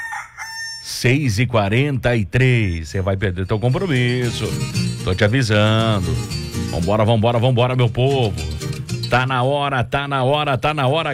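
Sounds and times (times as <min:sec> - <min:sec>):
rooster crowing: 0:00.0 - 0:01.0
speech: 0:00.8 - 0:11.1.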